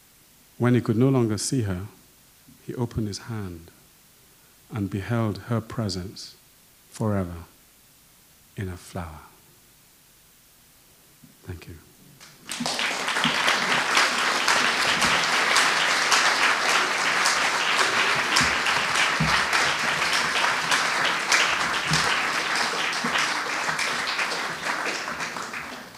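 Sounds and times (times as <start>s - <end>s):
speech: 0.6s - 2.0s, 2.7s - 3.8s, 4.7s - 6.4s, 7.0s - 7.5s, 8.6s - 9.3s, 11.5s - 11.9s
audience applause: 12.2s - 25.9s.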